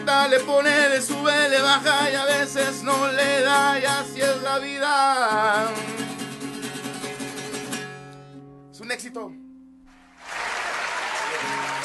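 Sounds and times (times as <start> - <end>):
speech: 0.1 - 6.2, 8.9 - 9.4
recorded applause sound effect: 10.0 - 11.8.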